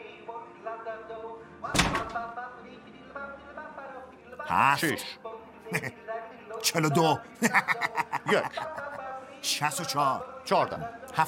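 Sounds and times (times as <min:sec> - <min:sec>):
speech: 0:01.6 - 0:03.4, 0:04.5 - 0:06.0, 0:06.6 - 0:08.8, 0:09.4 - 0:11.2
door slamming: 0:01.7 - 0:02.3
laughter: 0:05.7 - 0:06.0, 0:06.6 - 0:09.1.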